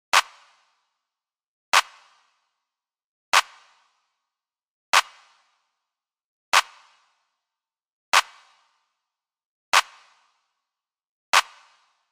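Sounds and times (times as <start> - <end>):
hand clap: 0.1 - 0.7, 1.8 - 2.2, 3.4 - 3.8, 5.0 - 5.3, 6.6 - 6.9, 8.2 - 8.4, 9.8 - 10.2, 11.4 - 11.7.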